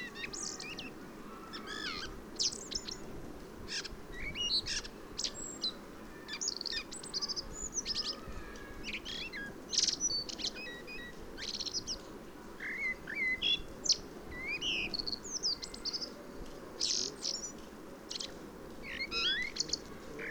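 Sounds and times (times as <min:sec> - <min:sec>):
common blackbird Turdus merula singing: 0:00.0 - 0:03.0, 0:03.7 - 0:16.2, 0:16.8 - 0:20.2.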